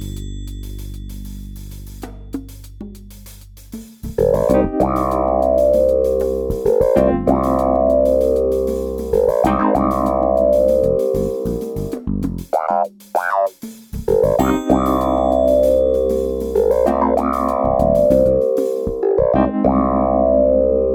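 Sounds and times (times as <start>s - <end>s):
wah-wah sound cue: 4.2s - 20.8s.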